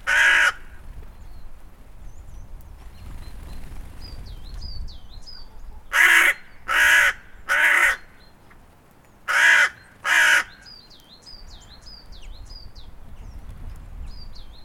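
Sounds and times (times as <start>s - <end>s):
hooded crow calling: 0.0s - 0.8s, 5.8s - 8.3s, 9.2s - 10.8s.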